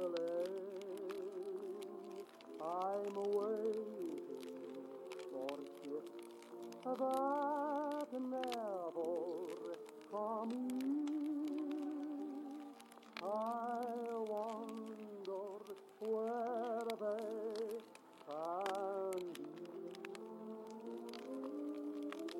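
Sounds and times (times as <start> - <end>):
fireplace crackling: 0.0 - 22.3
oldies song playing from another room: 0.0 - 22.3.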